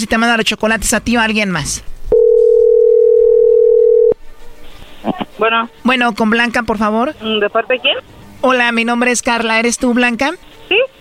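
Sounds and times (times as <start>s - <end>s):
speech: 0.0s - 2.2s, 5.0s - 10.9s
telephone dial tone: 2.2s - 4.2s.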